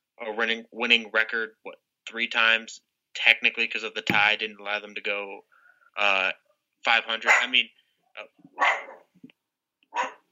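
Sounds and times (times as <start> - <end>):
speech: 0.3 - 8.9
dog barking: 7.2 - 7.6, 8.6 - 9.1, 9.9 - 10.3
dog yipping: 7.3 - 7.5, 8.6 - 9.1, 9.9 - 10.3.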